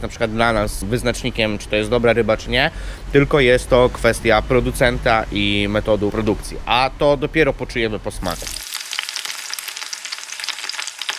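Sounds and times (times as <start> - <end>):
speech: 0.0 - 8.7
fresh oil frying in a pan: 8.3 - 11.1.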